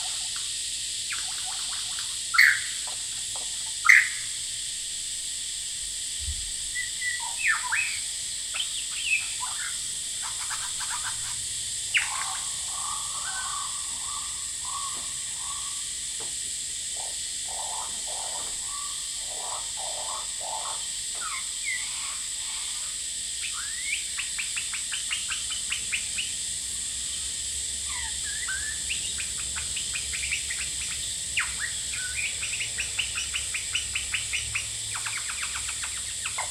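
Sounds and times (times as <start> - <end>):
cicadas buzzing: 0.0 - 36.5
male lyrebird calling at Horsfield Bay NSW: 1.1 - 4.3, 6.8 - 15.9, 17.0 - 26.3, 27.8 - 36.5.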